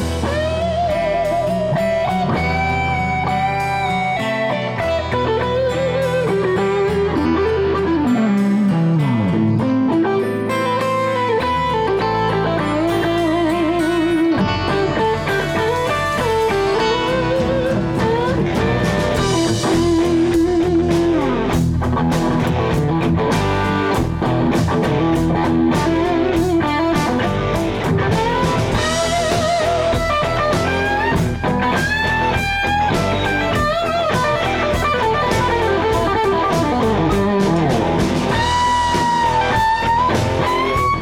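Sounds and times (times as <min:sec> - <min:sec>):
Gibson R9 electric guitar with Custombucker pickups: 0:00.0 - 0:40.9.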